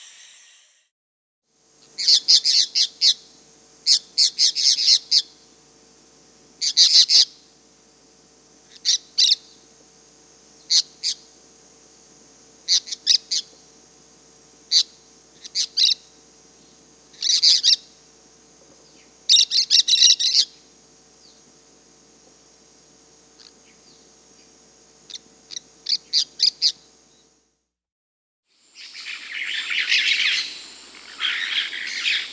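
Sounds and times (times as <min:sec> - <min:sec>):
cobalt-winged parakeets chirping and twittering in South America: 0:02.0 - 0:05.4, 0:06.6 - 0:07.3, 0:08.6 - 0:09.6, 0:10.6 - 0:11.4, 0:12.6 - 0:13.6, 0:14.6 - 0:16.2, 0:17.1 - 0:18.0, 0:18.7 - 0:21.4, 0:23.4 - 0:26.9, 0:29.0 - 0:32.3.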